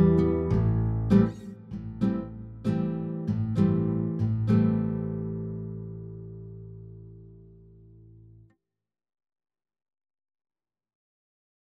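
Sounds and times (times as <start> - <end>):
classical harp music: 0.0 - 6.3.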